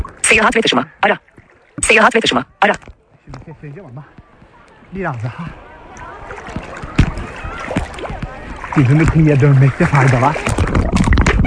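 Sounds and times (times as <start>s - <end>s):
sea water splashing around a person swimming while holding a phone: 0.0s - 3.4s, 4.2s - 11.4s
speech: 0.3s - 4.2s, 4.9s - 5.7s, 8.7s - 11.0s.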